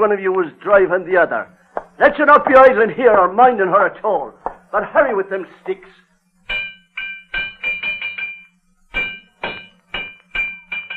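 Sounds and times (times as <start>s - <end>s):
speech: 0.0s - 6.0s
low steady hum: 0.0s - 10.9s
hammer pounding metal: 6.4s - 10.9s.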